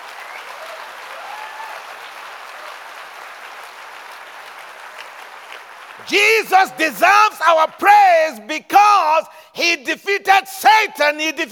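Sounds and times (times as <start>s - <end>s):
audience clapping: 0.0s - 8.0s
speech: 6.0s - 11.4s.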